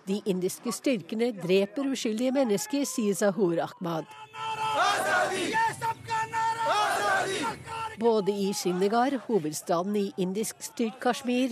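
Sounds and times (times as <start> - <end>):
speech: 0.1 - 5.8, 8.0 - 11.5
protest crowd chanting slogans: 4.0 - 11.5.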